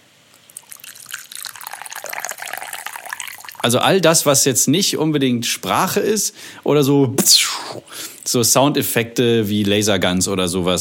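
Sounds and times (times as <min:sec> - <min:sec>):
liquid being poured into a glass: 0:00.3 - 0:04.0
speech: 0:03.6 - 0:10.7.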